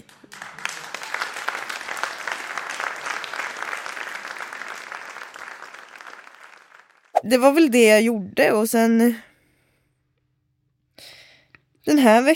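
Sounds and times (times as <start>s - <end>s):
applause: 0.0s - 7.1s
speech: 7.2s - 9.3s, 11.9s - 12.3s.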